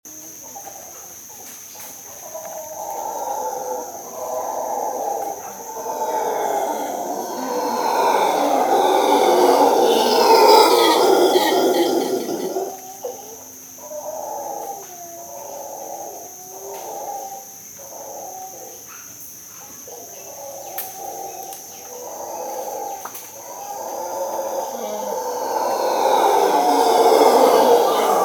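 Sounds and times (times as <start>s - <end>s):
monkey: 1.8s - 19.1s, 19.9s - 28.2s.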